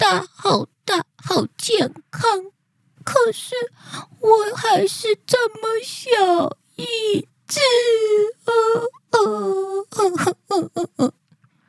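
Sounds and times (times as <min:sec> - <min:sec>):
voice imitating a little orange elf crying: 0:00.0 - 0:02.5, 0:03.1 - 0:11.2
speech: 0:00.1 - 0:02.5, 0:03.1 - 0:11.2.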